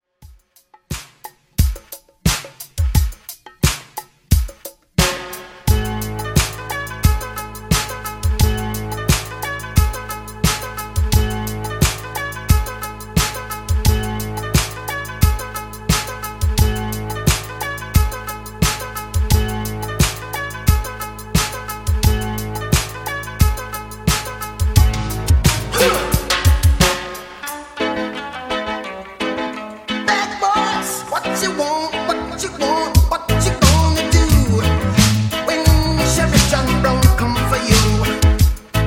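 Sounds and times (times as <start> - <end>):
DJ intro outro music at 88 BPM: 1.0 - 38.8.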